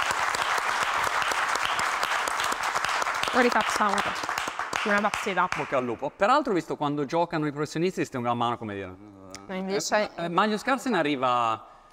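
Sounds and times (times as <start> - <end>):
audience applause of encouragement: 0.0 - 5.7
speech: 3.3 - 11.7.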